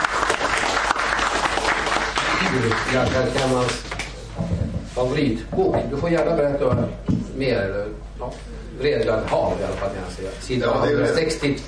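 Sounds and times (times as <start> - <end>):
audience applause: 0.0 - 3.8
speech: 2.5 - 11.6.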